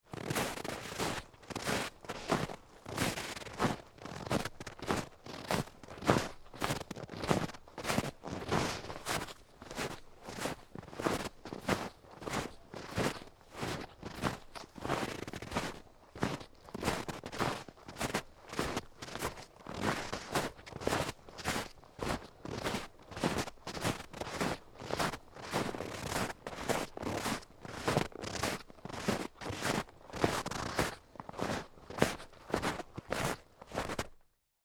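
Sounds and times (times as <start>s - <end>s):
footsteps walking through snow in a forest: 0.1s - 34.2s.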